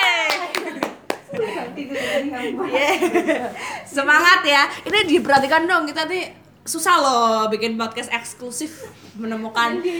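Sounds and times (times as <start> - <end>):
audience clapping: 0.0 - 1.5
laughter: 0.0 - 3.9
speech: 1.8 - 9.9.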